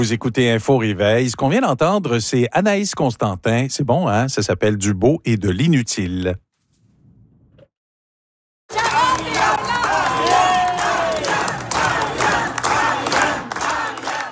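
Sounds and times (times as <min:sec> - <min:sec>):
speech: 0:00.0 - 0:06.5
crowd cheering at campaign rally: 0:08.7 - 0:14.3.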